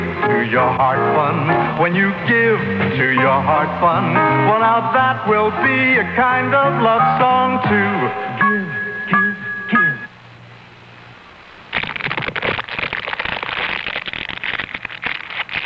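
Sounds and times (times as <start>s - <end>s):
speech: 0.3s - 9.2s
fire crackling: 11.5s - 15.6s.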